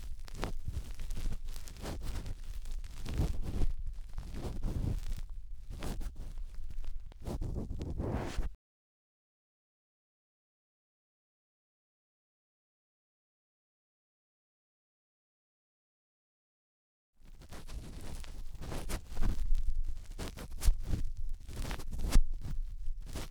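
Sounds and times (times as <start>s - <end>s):
cotton swab rubbing deep inside the right ear: 0.0s - 8.6s, 17.3s - 23.2s.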